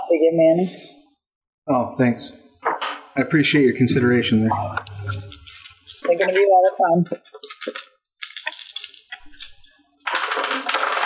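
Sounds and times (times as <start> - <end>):
speech: 0.1 - 1.0, 1.6 - 2.4, 3.2 - 5.4, 6.1 - 7.8
dice dropping on a table: 7.4 - 11.0.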